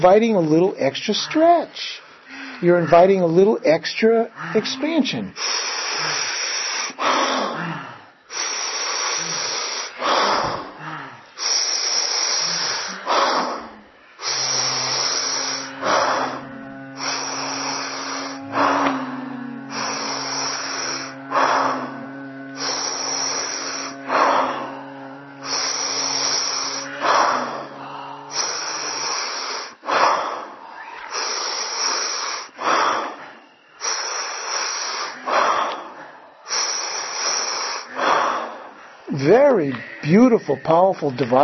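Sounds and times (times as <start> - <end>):
speech: 0.0 - 2.0, 2.6 - 6.2, 40.4 - 41.4
person doing stacked inhales and a long exhale in a breathing exercise: 1.3 - 40.9
steady low hum: 12.4 - 29.0.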